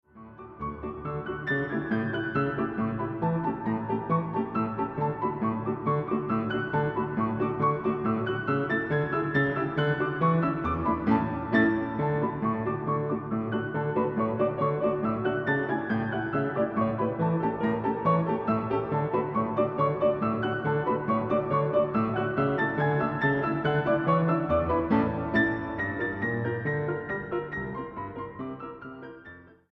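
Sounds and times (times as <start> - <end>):
galop music: 0.2 - 29.2.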